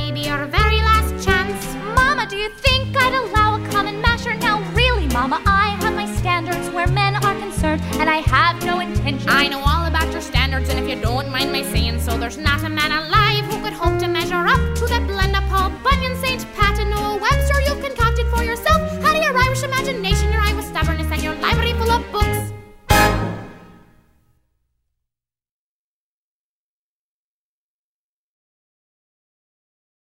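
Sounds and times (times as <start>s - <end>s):
piano playing in a lesson: 0.0s - 24.1s.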